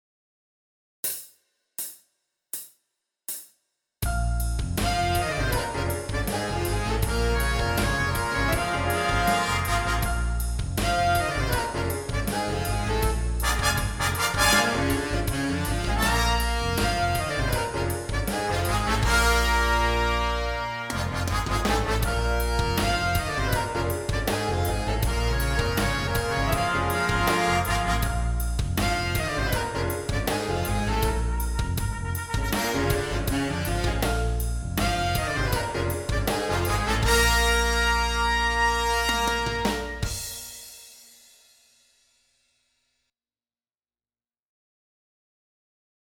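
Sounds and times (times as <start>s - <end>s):
brass lip slur: 4.9s - 31.6s, 32.2s - 40.0s.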